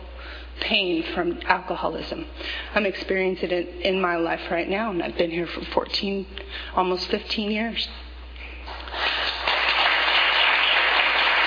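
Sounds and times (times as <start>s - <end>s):
speech: 0.7s - 8.0s
audience clapping: 8.7s - 11.4s.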